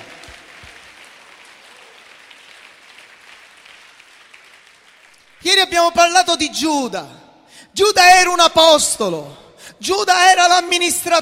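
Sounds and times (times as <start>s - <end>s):
audience applauding: 0.0s - 5.6s
speech: 5.4s - 7.2s, 7.8s - 11.2s.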